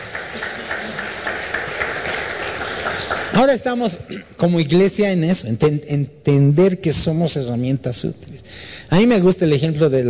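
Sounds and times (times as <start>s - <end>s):
audience applauding: 0.0s - 3.6s
speech: 3.4s - 10.0s.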